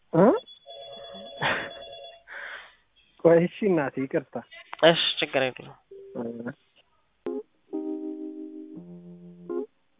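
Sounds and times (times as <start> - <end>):
telephone ringing: 0.4 - 2.3
speech: 3.3 - 6.7.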